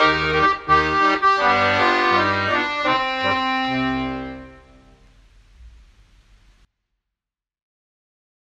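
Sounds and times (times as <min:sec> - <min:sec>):
accordion arrangement: 0:00.0 - 0:05.0.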